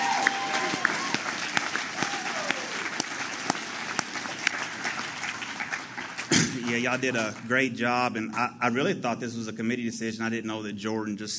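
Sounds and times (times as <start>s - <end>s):
faint cheering: 0.0s - 3.6s
audience applause: 0.0s - 7.2s
speech: 6.7s - 11.3s.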